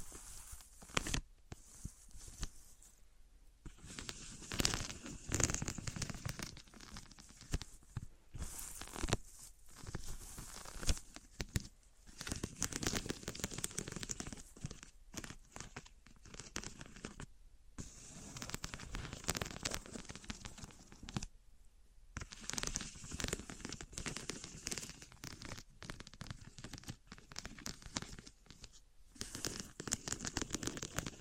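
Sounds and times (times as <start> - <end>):
wood, cork, sponge, foam, glass and plastic objects handled: 0.0 - 3.1, 3.7 - 21.3, 22.2 - 31.1.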